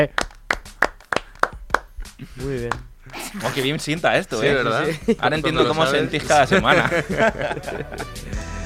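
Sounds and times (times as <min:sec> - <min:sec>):
speech: 0:00.0 - 0:00.2, 0:02.2 - 0:08.5
applause: 0:00.0 - 0:01.9
laughter: 0:02.2 - 0:08.5.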